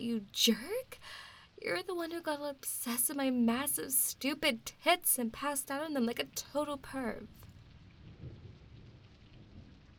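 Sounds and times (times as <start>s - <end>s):
rainfall pattering in a thunderstorm: 0.0s - 9.9s
speech: 0.2s - 1.0s, 1.6s - 7.4s
low rumble of thunder: 7.8s - 9.9s.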